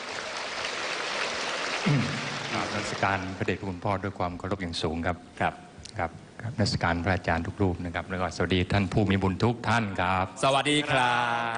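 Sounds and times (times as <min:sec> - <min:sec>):
audience applause: 0:00.0 - 0:03.5
speech: 0:01.8 - 0:11.5.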